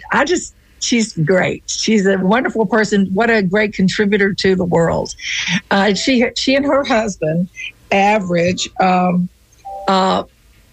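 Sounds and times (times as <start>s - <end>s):
speech: 0.1s - 10.3s
telephone ringing with a short electronic chime: 9.6s - 10.2s.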